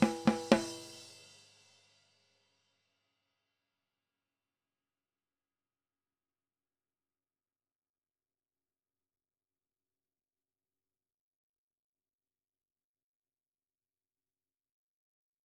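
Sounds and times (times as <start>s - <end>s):
snare drum: 0.0s - 1.3s.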